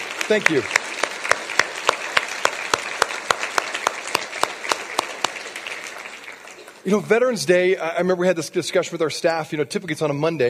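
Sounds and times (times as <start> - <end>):
audience applause for veterans: 0.0 - 7.3
speech: 0.3 - 0.8, 6.8 - 10.4.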